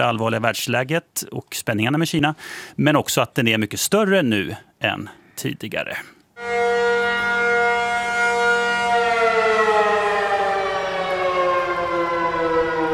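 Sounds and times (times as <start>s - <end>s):
speech: 0.0s - 6.2s
civil defense all-clear siren in subway: 6.4s - 12.9s.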